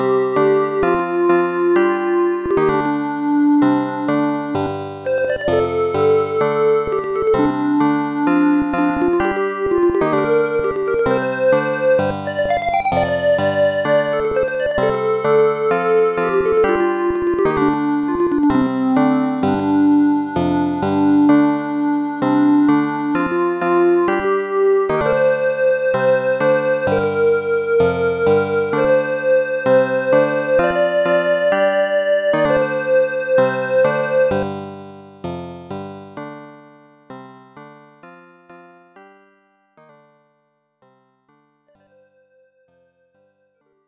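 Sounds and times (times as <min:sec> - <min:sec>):
background music: 0:00.0 - 0:34.7.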